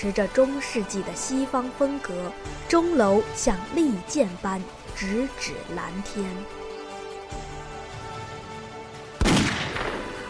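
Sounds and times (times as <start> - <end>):
speech: 0.0 - 6.6
distant rifle gunshot: 9.2 - 10.2.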